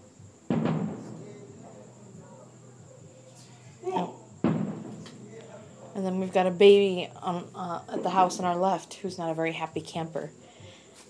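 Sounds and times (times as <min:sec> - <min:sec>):
fireworks booming: 0:00.0 - 0:08.8
fireworks crackling: 0:00.0 - 0:08.8, 0:09.4 - 0:11.0
speech: 0:06.0 - 0:10.4.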